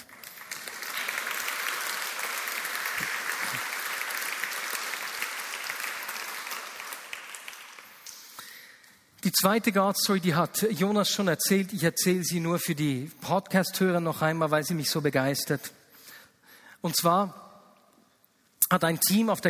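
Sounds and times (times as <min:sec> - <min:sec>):
audience applause: 0:00.0 - 0:08.1
speech: 0:09.2 - 0:15.8, 0:16.8 - 0:17.4, 0:18.7 - 0:19.4.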